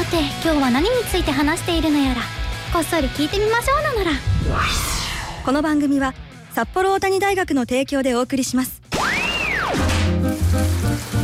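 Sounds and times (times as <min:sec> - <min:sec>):
speech: 0:00.1 - 0:04.9, 0:05.5 - 0:08.8
rain falling: 0:09.8 - 0:11.2.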